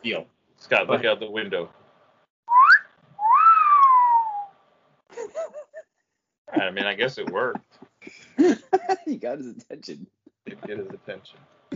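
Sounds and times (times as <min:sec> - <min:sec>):
speech: 0:00.0 - 0:01.8, 0:06.5 - 0:11.6
wolf whistle: 0:02.5 - 0:04.5
laughter: 0:05.2 - 0:05.8, 0:06.5 - 0:09.9, 0:10.5 - 0:11.7.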